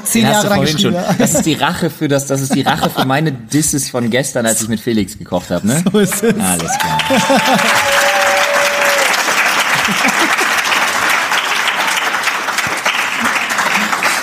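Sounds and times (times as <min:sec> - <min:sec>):
speech: 0:00.1 - 0:08.1
person laughing: 0:00.6 - 0:01.7, 0:02.4 - 0:03.2, 0:05.6 - 0:07.9, 0:09.7 - 0:10.6
audience applause: 0:05.9 - 0:14.2.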